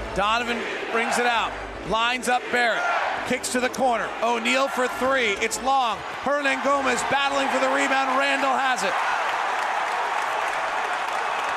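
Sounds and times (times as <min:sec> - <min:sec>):
speech: 0:00.2 - 0:09.1
arena crowd roaring: 0:00.2 - 0:11.5
arena crowd clapping: 0:04.4 - 0:11.5.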